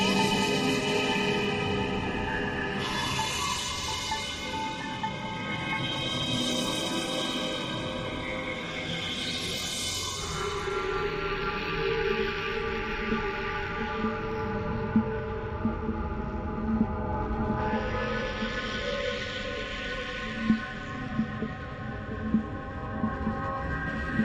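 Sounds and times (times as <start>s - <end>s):
glowing abstract drone: 0.0s - 24.2s.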